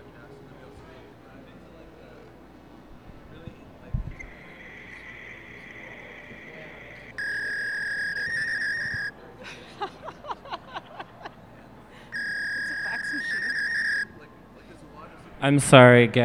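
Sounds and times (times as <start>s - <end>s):
rapid fax chirping bursts: 0.0s - 9.2s, 11.8s - 14.2s
electronic fax tone over a phone line: 0.0s - 9.3s, 11.4s - 15.5s
laughter: 3.2s - 14.1s
speech: 15.4s - 16.2s.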